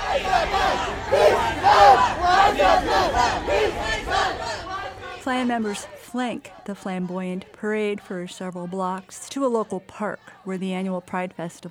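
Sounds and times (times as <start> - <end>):
protest crowd chants and counter-chants: 0.0 - 11.6
speech: 5.2 - 11.6.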